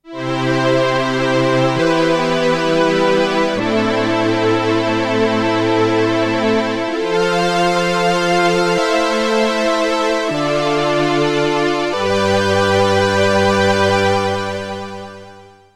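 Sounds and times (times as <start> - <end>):
Korg Polysix poly synth strings: 0.1 - 15.5.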